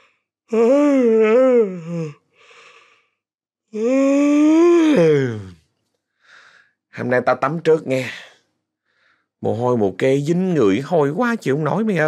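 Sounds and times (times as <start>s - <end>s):
speech: 0.5s - 2.2s, 7.0s - 8.3s, 9.4s - 12.0s
long yawn: 0.5s - 3.1s, 3.8s - 5.6s.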